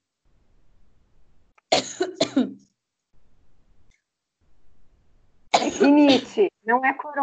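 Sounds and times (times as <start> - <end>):
person coughing after choking: 1.7 - 2.6, 5.6 - 6.4
speech: 5.8 - 7.2.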